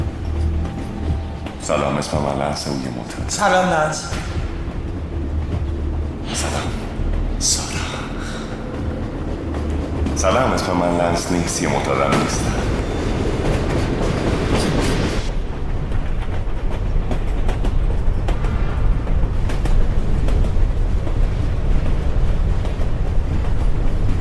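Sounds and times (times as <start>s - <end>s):
train carriage rolling on rails: 0.0s - 24.1s
speech: 1.6s - 4.4s, 7.4s - 7.6s, 10.2s - 12.8s.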